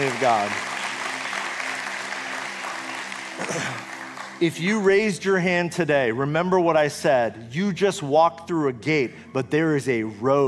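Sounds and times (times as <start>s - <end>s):
speech: 0.0s - 0.7s, 3.4s - 10.4s
church congregation applauding: 0.0s - 5.2s.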